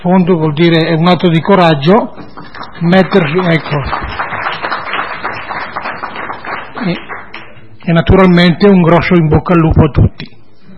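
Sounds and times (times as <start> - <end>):
speech: 0.0 - 4.2, 6.8 - 7.1, 7.9 - 10.4
audience applause in council meeting: 2.2 - 7.5.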